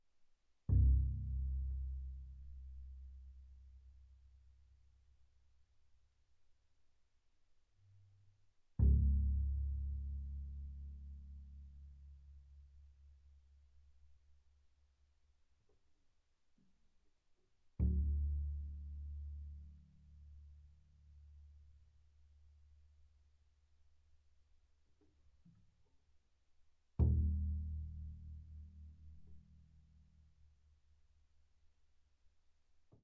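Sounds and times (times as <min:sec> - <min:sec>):
double bass pizzicato on the C string: 0:00.7 - 0:04.0, 0:08.8 - 0:13.0, 0:17.8 - 0:20.3, 0:27.0 - 0:29.7.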